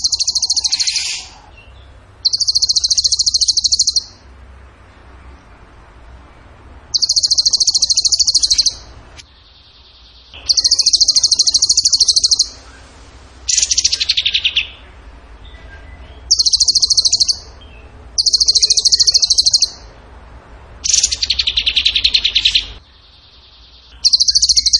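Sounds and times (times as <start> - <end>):
bird giving high rapid rattling trills: 0.0 - 1.5, 2.2 - 4.2, 6.9 - 8.9, 9.6 - 12.7, 13.5 - 14.6, 16.3 - 17.5, 18.2 - 19.8, 20.8 - 22.8, 23.4 - 24.7.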